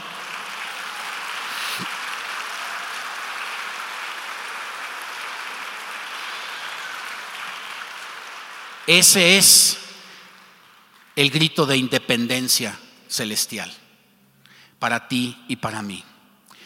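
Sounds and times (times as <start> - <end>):
audience applauding: 0.0 - 11.2
speech: 8.9 - 9.8, 11.2 - 13.8, 14.8 - 16.1.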